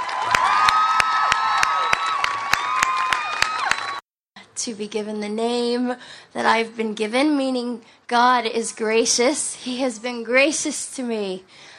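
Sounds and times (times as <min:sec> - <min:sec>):
audience applause welcoming a speaker to the stage: 0:00.0 - 0:04.0
speech: 0:04.6 - 0:11.7.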